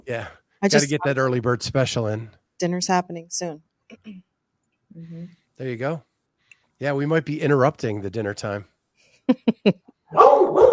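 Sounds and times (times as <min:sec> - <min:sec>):
speech: 0:00.1 - 0:04.3, 0:04.9 - 0:06.1, 0:06.8 - 0:08.7, 0:09.3 - 0:09.8
dog barking and yowling: 0:10.1 - 0:10.7.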